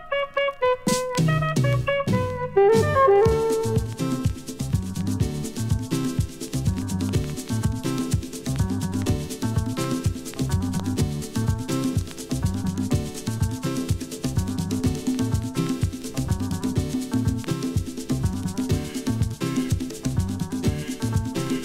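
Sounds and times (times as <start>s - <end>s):
Afro Cuban funky grooves: 0.0s - 21.6s.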